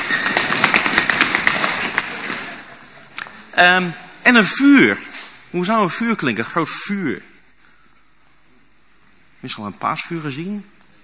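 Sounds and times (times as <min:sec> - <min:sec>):
group of people tapping, drumming and rustling imitating an earthquake: 0:00.0 - 0:02.8
speech: 0:03.6 - 0:07.3, 0:09.4 - 0:10.7.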